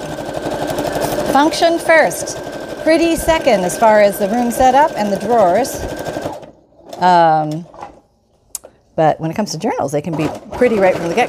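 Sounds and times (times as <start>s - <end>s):
sewing machine running: 0.0s - 7.1s, 10.2s - 11.2s
speech: 1.4s - 6.1s, 7.0s - 7.7s, 9.0s - 11.2s.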